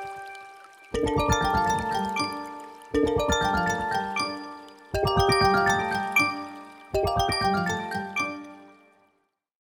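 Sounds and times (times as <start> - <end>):
ringtone on Honor Pad X7: 1.0 - 8.8.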